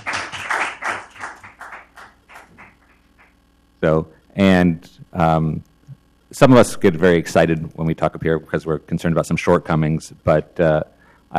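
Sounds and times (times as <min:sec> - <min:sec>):
hand clapping: 0:00.0 - 0:03.4
speech: 0:03.8 - 0:05.7, 0:06.3 - 0:11.3.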